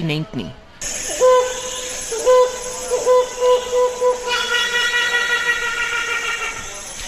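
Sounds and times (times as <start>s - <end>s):
speech: 0.0s - 0.6s
helmeted hornbill hooting and laughing calls: 1.0s - 6.9s.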